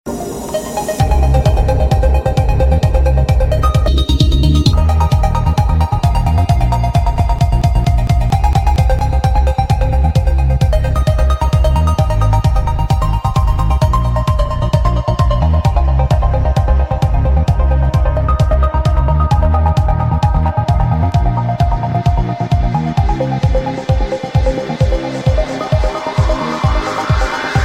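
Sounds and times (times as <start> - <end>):
sweet ringtone: 0.4 - 27.6.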